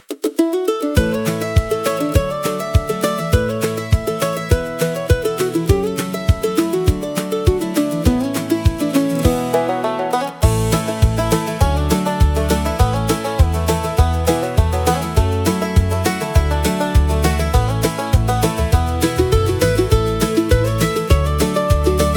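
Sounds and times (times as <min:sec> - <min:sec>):
refreshing country acoustic music for nature: 0:00.4 - 0:22.1.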